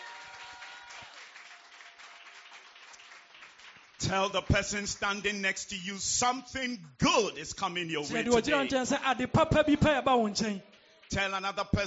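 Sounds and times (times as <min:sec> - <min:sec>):
audience hand clapping: 0:00.0 - 0:05.3, 0:10.6 - 0:11.8
speech: 0:04.0 - 0:11.8.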